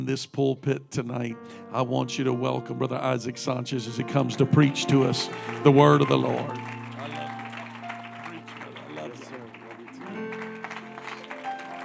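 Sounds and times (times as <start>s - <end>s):
speech: 0.0s - 6.8s
audience hand clapping: 4.6s - 11.8s.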